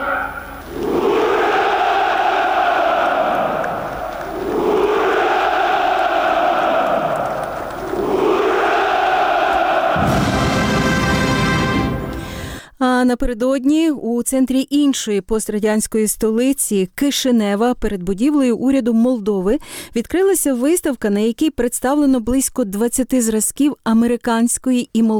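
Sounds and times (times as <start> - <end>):
crowd at a Victory Day celebration shouting Ura: 0.0 - 12.4
speech: 13.2 - 25.1.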